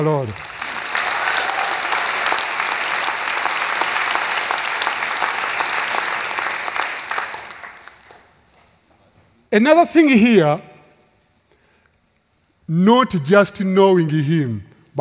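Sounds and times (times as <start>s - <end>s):
speech: 0.0s - 0.5s, 9.6s - 10.7s, 12.7s - 14.9s
audience applauding with hand claps: 0.0s - 8.5s.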